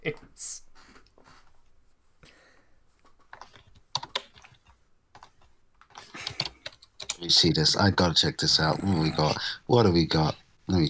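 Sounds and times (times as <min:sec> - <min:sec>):
rapid typing on a computer keyboard: 0:03.3 - 0:07.2
speech: 0:07.3 - 0:10.8.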